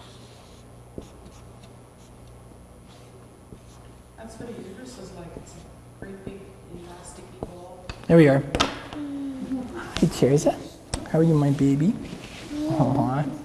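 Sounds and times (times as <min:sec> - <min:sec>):
pen or pencil scratching on paper while drawing: 0:00.0 - 0:03.9
faint steady hum: 0:00.0 - 0:13.4
speech: 0:04.2 - 0:09.1, 0:09.8 - 0:13.4.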